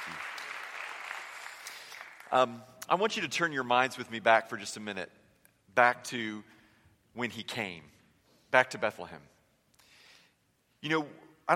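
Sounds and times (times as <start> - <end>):
crowd applause: 0.0 - 2.3
speech: 2.3 - 5.2, 5.8 - 6.6, 7.2 - 9.3, 10.8 - 11.5.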